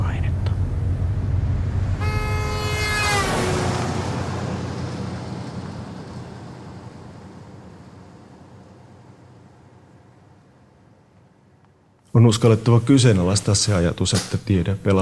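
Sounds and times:
combustion engine vehicle running: 0.0 - 15.0
horn blast: 1.6 - 5.4
speech: 12.2 - 15.0.

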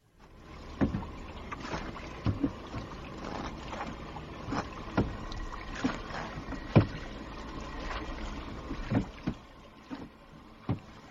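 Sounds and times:
low rumble of wind on a lake: 0.0 - 11.0
water sloshing around a boat on a lake: 0.0 - 11.0
sharp knocks or splashes of a boat: 0.5 - 11.0.

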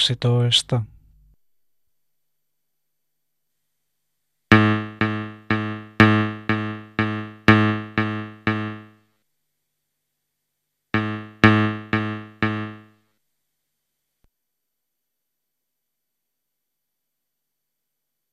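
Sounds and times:
speech: 0.0 - 0.9
musical aptitude test harmonic tone sequences: 4.5 - 9.0, 11.0 - 12.9.

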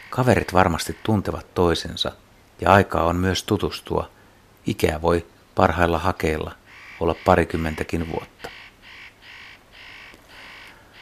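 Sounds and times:
spotted nutcracker call: 0.0 - 1.6, 6.6 - 11.0
speech: 0.1 - 8.6.

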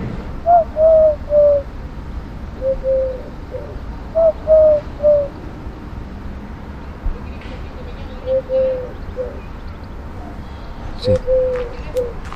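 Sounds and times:
hiss and rumble: 0.0 - 12.3
Eurasian collared dove cooing three-note phrase: 0.4 - 1.7, 2.6 - 5.4, 7.5 - 9.6, 10.2 - 12.2.

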